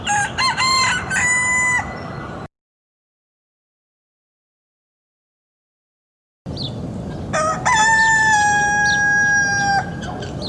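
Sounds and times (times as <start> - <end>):
male domestic chicken Gallus gallus domesticus crowing: 0.1 - 2.0, 7.3 - 10.1.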